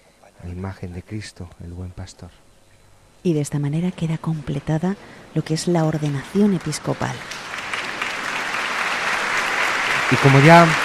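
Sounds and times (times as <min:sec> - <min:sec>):
speech: 0:00.4 - 0:02.5, 0:03.2 - 0:07.6, 0:10.1 - 0:10.8
Menorca assembly applauding: 0:05.4 - 0:10.8.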